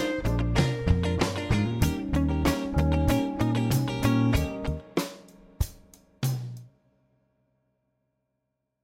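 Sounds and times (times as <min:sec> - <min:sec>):
diminished dominant pattern: 0:00.0 - 0:06.7.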